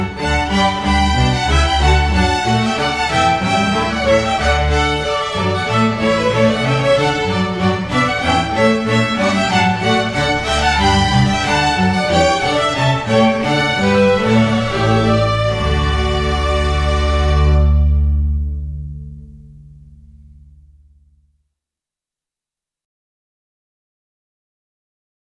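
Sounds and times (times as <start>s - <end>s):
chamber orchestra playing: 0.0s - 19.5s.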